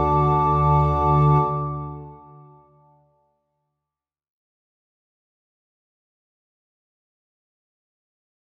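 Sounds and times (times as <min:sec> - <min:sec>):
organ playing: 0:00.0 - 0:02.5.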